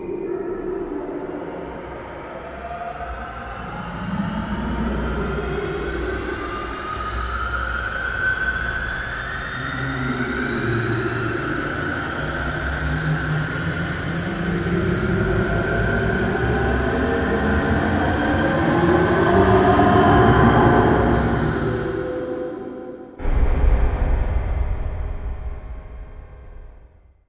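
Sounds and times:
sci-fi horror ambient drone: 0.0s - 27.0s
impact hit: 23.2s - 27.2s.

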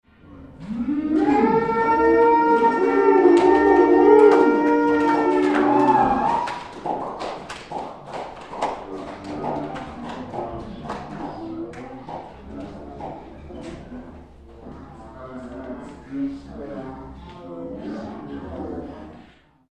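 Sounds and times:
small pub gig crowd cheering: 0.6s - 13.0s.

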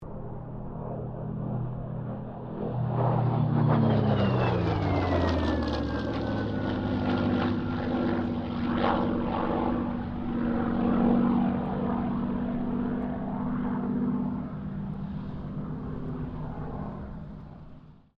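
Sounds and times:
Supermarine Spitfire Mk XVI aircraft passing: 0.0s - 18.1s.

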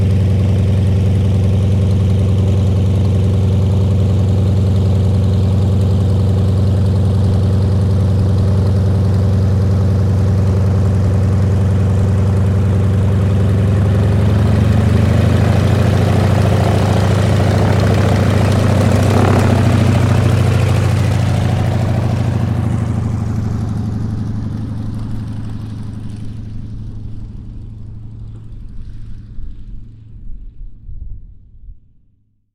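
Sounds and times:
Yakovlev Yak-52 training aircraft taxiing: 0.0s - 29.7s
Yakovlev Yak-52 training aircraft engine starting: 10.0s - 26.2s.

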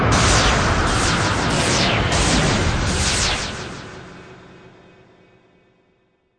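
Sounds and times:
magical conjure barrage of spell casting: 0.2s - 4.3s.

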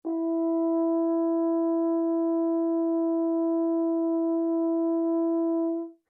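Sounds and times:
French horn in F long E5 note played mezzo-piano: 0.0s - 6.0s.

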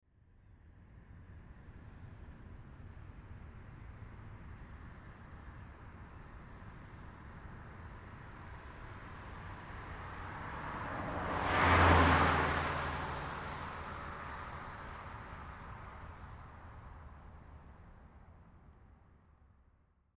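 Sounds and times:
1986 Ford Escort driving by right to left at 55 mph: 9.4s - 17.6s.

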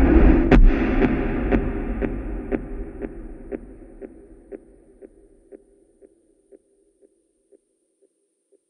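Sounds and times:
movie trailer slow rising impact with delay: 0.2s - 4.0s.

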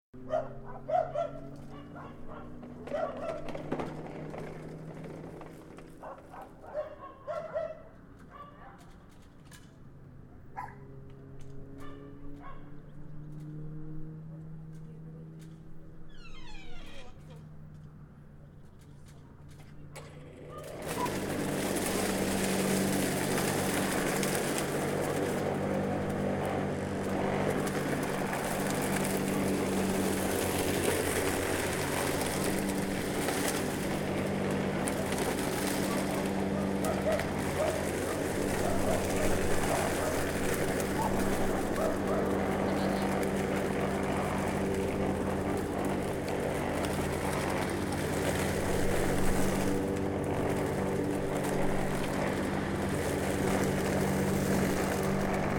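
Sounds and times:
dogs barking: 0.2s - 3.6s, 6.0s - 8.9s, 10.6s - 10.9s, 11.8s - 12.8s, 35.8s - 42.7s
ambient noises of a garden in the city: 0.2s - 55.5s.

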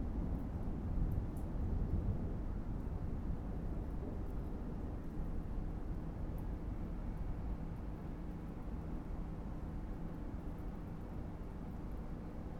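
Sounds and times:
thunderstorm rain: 0.0s - 12.5s.

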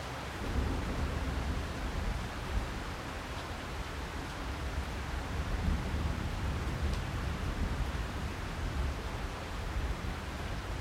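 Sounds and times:
tropical thunderstorm: 0.2s - 10.7s.

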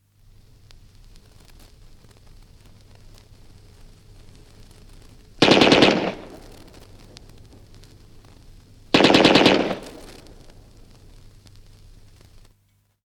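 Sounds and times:
Bren gun bursts from 78 disc: 5.4s - 6.7s, 8.9s - 10.3s.

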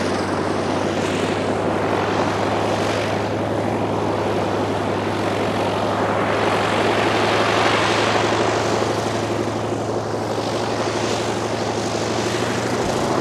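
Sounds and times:
CAC Wirraway CA-16 aircraft preflight: 0.0s - 13.1s.

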